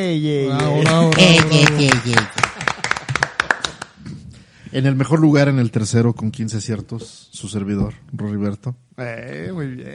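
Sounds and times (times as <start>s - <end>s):
speech: 0.0s - 2.4s, 4.7s - 9.9s
crowd applause: 0.6s - 3.9s.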